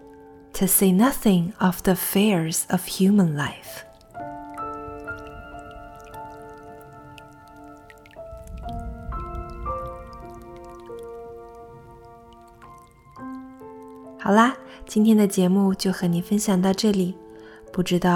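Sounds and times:
monotonous dripping of rain: 0.0 - 18.1
speech: 0.6 - 3.9, 14.3 - 17.2, 17.8 - 18.1
sustained slowly shifting musical tones: 4.1 - 14.1
low rumbling wash: 4.9 - 12.9.

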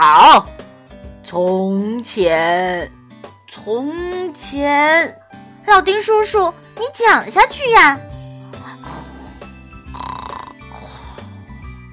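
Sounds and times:
speech: 1.3 - 3.0, 3.6 - 8.1
man snoring: 8.6 - 11.6.

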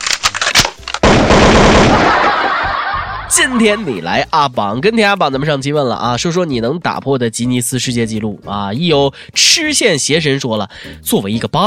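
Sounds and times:
gunshots: 0.5 - 2.5
automatic gunfire: 1.0 - 2.3
laughter: 1.8 - 4.1
speech: 3.4 - 11.6.

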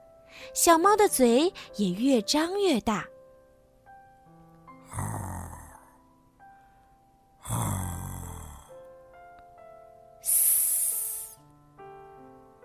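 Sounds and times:
speech: 0.5 - 3.1
snoring: 4.8 - 6.0, 7.4 - 8.8.

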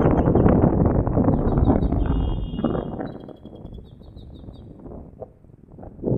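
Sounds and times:
loud steady wind noise rumble: 0.0 - 6.1
bird singing in a tree: 1.3 - 4.7.

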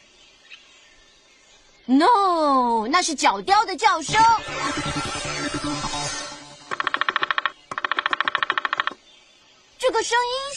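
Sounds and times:
speech: 1.9 - 6.2, 10.0 - 10.5
woodpecker drumming: 6.6 - 9.2.

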